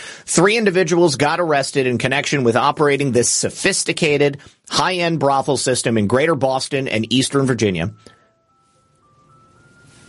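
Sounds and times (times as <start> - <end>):
speech: 0.3 - 8.2
ice cream truck jingle: 7.9 - 10.0.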